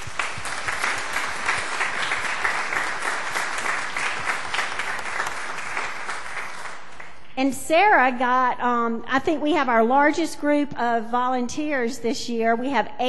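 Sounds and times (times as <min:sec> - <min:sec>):
audience applause: 0:00.0 - 0:07.2
speech: 0:07.4 - 0:13.0.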